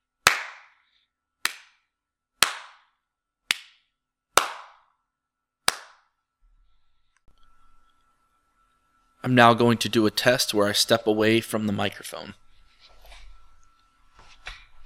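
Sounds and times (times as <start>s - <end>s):
hand clapping test: 0.2s - 0.8s, 1.4s - 1.8s, 2.4s - 4.9s, 5.7s - 6.1s
speech: 9.2s - 12.4s.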